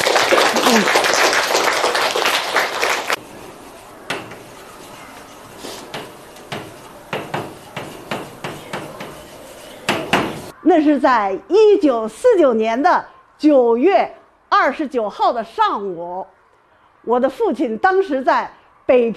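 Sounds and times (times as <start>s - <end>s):
group applauding warmly: 0.0s - 3.2s
speech: 10.8s - 16.4s, 17.0s - 19.1s.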